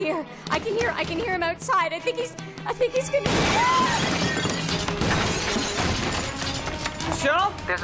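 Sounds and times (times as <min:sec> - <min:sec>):
speech: 0:00.0 - 0:04.5, 0:07.2 - 0:07.8
window crashing: 0:03.3 - 0:07.0.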